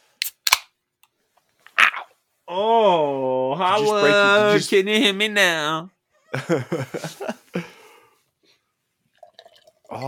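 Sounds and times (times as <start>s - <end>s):
beer can cracking open: 0.2s - 0.7s
speech: 2.5s - 7.4s
laughter: 6.3s - 7.8s.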